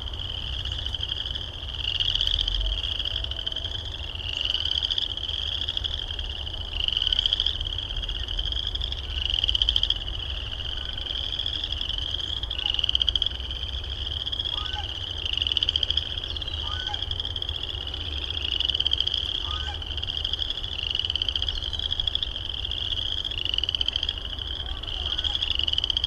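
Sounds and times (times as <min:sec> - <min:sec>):
frogs calling with short rising high chirps: 0:00.0 - 0:26.0.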